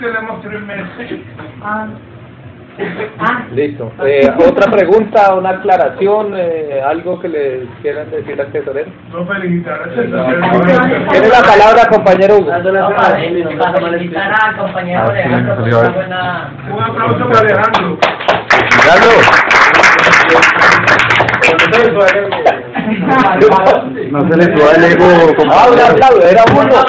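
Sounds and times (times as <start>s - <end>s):
speech: 0.0s - 2.1s, 2.8s - 19.5s, 20.3s - 26.8s
audience applause: 17.7s - 22.5s, 26.6s - 26.8s.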